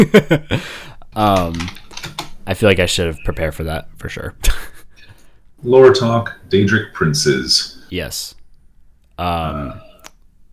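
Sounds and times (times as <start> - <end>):
speech: 0.0 - 1.8, 2.5 - 4.7, 5.6 - 8.4, 9.2 - 9.9
typing on a computer keyboard: 1.3 - 2.4.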